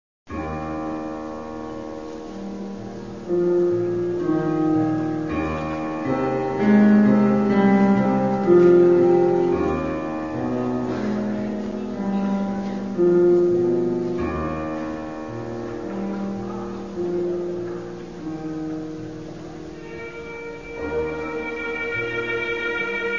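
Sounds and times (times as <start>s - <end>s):
blues music: 0.5s - 23.1s.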